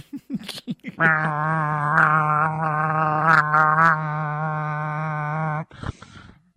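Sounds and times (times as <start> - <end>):
voice imitating a vuvuzela horn: 1.0 - 5.7.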